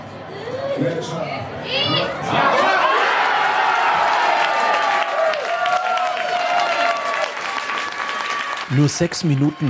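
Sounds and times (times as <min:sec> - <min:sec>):
speech: 0:00.8 - 0:02.6, 0:08.7 - 0:09.6
Germany football fans cheering at public viewing: 0:02.2 - 0:09.6.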